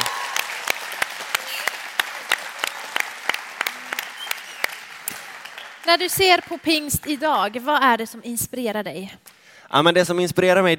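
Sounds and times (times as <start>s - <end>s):
audience applause: 0.0s - 7.9s
speech: 5.9s - 10.7s.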